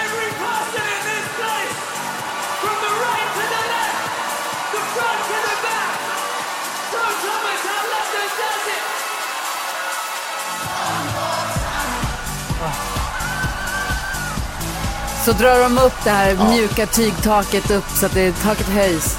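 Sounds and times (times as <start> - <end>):
concert crowd cheering: 0.0 - 19.1
music: 0.0 - 19.1
speech: 15.3 - 19.1.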